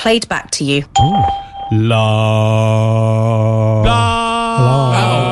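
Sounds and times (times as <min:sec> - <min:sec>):
speech: 0:00.0 - 0:05.2
Skype call test electronic beep: 0:01.0 - 0:02.1.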